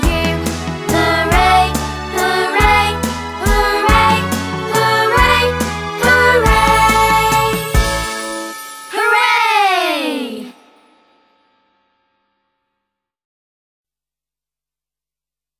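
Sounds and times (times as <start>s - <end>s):
song: 0.0s - 11.7s.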